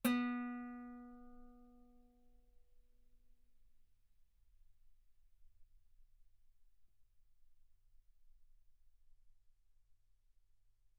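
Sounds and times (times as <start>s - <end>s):
guitar note B3: 0.0s - 1.6s.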